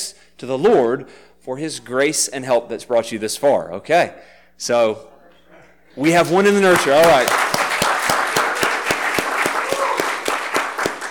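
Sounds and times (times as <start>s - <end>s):
speech: 0.4s - 5.1s, 6.0s - 7.4s
audience applause for graduates: 6.6s - 11.0s.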